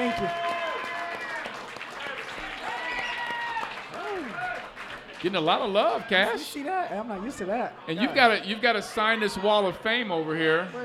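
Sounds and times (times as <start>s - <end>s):
crowd applause: 0.0s - 6.0s
speech: 5.2s - 10.8s.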